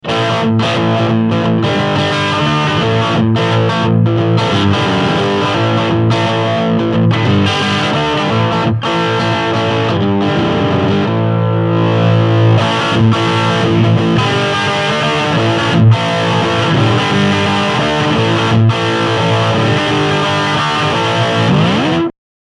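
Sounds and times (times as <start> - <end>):
riff: 0.0 - 22.1.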